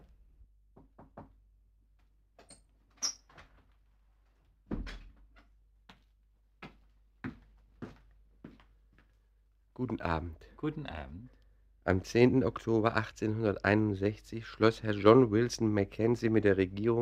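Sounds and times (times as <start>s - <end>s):
door opening and closing: 2.4s - 3.7s, 4.7s - 5.3s
speech: 9.8s - 17.0s.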